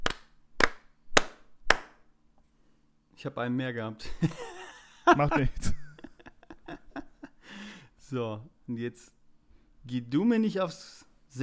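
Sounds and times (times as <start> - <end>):
rhythmic clapping count-in: 0.0 - 2.1
speech: 3.2 - 4.5, 5.1 - 5.8, 8.1 - 9.2, 9.8 - 11.4
laughter: 4.0 - 7.4.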